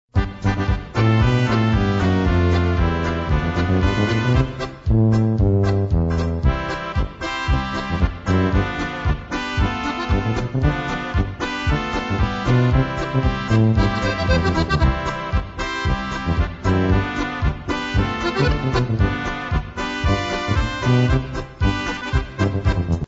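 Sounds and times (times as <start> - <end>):
polka music: 0.1 - 23.0.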